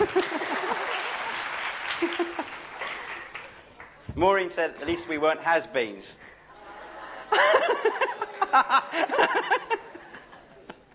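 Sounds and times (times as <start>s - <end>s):
laughter: 0.0s - 3.3s, 6.5s - 10.9s
round of applause: 0.0s - 4.1s
speech: 4.2s - 6.3s, 7.3s - 9.9s.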